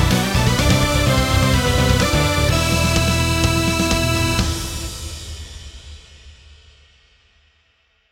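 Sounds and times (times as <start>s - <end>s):
stage bonus jingle: 0.2s - 4.7s.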